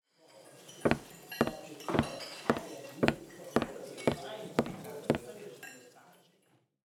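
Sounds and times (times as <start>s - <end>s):
stiletto footsteps on wood parquet: 0.9s - 5.3s.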